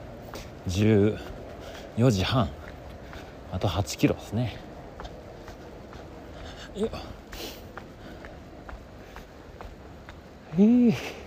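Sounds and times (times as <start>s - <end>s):
faint hiss: 0.0s - 11.2s
hiker's footsteps crunching along a mountain trail in Miyazaki Japan: 0.0s - 11.2s
speech: 0.6s - 1.4s, 2.0s - 2.6s, 3.5s - 4.7s, 6.8s - 7.2s, 10.6s - 11.2s.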